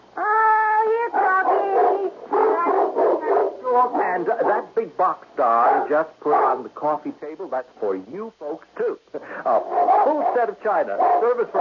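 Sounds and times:
Doberman Pinscher yelping and whimpering: 0:00.2 - 0:04.0, 0:09.5 - 0:11.5
speech: 0:03.8 - 0:11.5.

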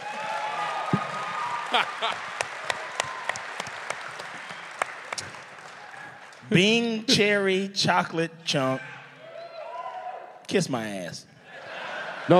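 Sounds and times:
audience clapping: 0:00.0 - 0:06.9
speech: 0:01.7 - 0:02.3, 0:06.5 - 0:09.0, 0:10.5 - 0:11.3
laughter: 0:01.7 - 0:02.4, 0:11.5 - 0:12.3.

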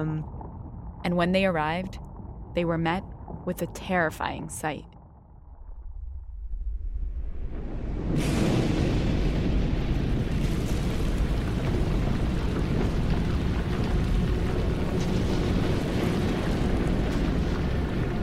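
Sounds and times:
speech: 0:01.0 - 0:04.9
volcanic eruption rumbling and exploding: 0:05.7 - 0:18.2.

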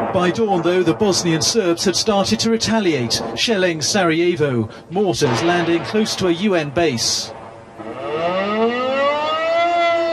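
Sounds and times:
speech: 0:00.1 - 0:07.4
civil defense warning sirens wailing across the city: 0:07.8 - 0:10.1.

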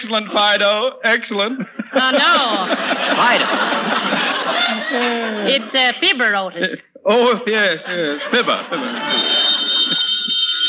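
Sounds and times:
speech: 0:00.0 - 0:10.0
laughter: 0:01.4 - 0:06.0, 0:07.6 - 0:10.6
telephone ringing with electric bell: 0:09.0 - 0:10.6.

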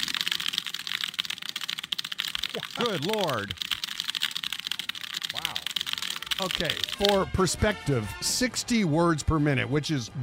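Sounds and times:
fast typing on a computer keyboard: 0:00.0 - 0:07.3
speech: 0:02.6 - 0:03.7, 0:06.4 - 0:10.2.

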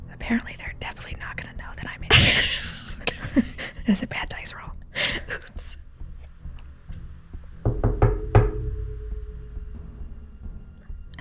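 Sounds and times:
speech: 0:00.3 - 0:01.4, 0:03.4 - 0:04.7
laughter: 0:02.1 - 0:03.8
low rumble: 0:05.8 - 0:11.1
loud banging on a door: 0:07.6 - 0:09.7.

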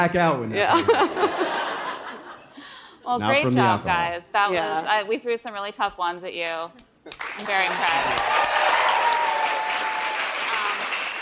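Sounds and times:
speech: 0:00.0 - 0:01.5, 0:03.1 - 0:08.4
laughter: 0:00.7 - 0:02.6
live audience applause: 0:07.1 - 0:11.1.

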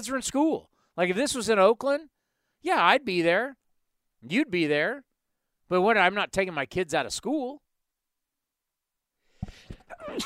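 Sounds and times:
speech: 0:00.0 - 0:03.6, 0:04.2 - 0:05.1, 0:05.7 - 0:07.6, 0:09.4 - 0:10.2
person sneezing: 0:09.4 - 0:10.2.

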